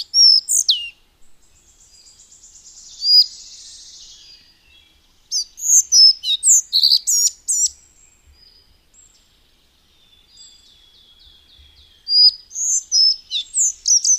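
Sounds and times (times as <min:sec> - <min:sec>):
Collared flycatcher song of high squeaky whistled notes: 0:00.0 - 0:01.0, 0:05.4 - 0:07.8, 0:12.1 - 0:14.1.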